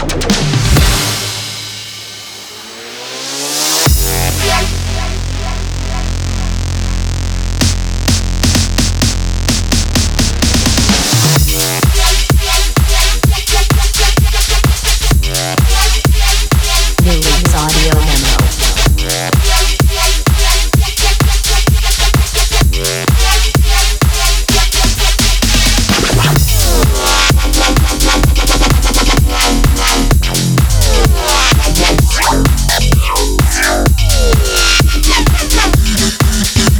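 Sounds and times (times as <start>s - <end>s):
Serum synth bass: 0.0s - 36.7s.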